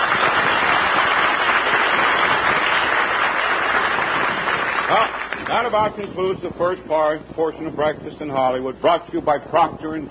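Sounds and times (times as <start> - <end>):
studio audience cheering: 0.0 - 5.4
speech: 5.6 - 10.1.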